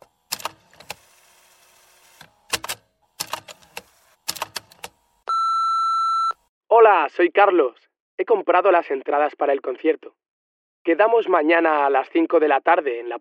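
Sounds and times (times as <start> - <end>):
mechanical clicks and clunks: 0.0 - 1.2, 2.0 - 5.0
answering machine beep: 5.3 - 6.4
speech: 7.0 - 10.2, 10.8 - 13.1.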